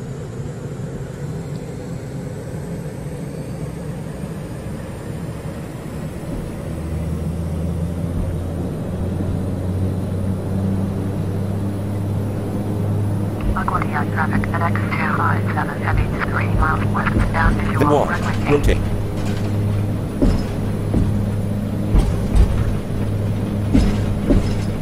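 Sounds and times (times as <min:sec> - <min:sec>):
aircraft engines spooling to takeoff thrust in a flight simulator game: 0:00.0 - 0:24.7
low droning tone: 0:05.0 - 0:24.7.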